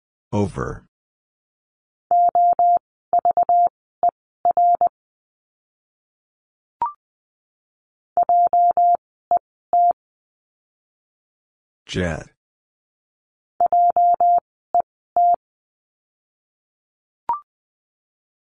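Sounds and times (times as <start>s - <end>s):
speech: 0.3s - 0.9s, 11.9s - 12.3s
Morse code tones at 20 words per minute: 2.1s - 3.7s, 4.5s - 4.9s, 8.2s - 9.0s, 9.8s - 10.0s, 13.6s - 14.4s, 15.2s - 15.4s.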